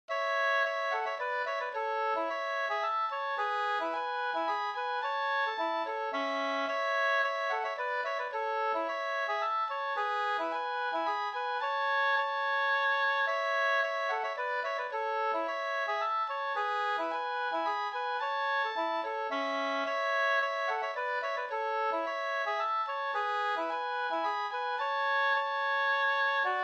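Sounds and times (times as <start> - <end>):
polska folk dance tune: 0.1 - 26.6.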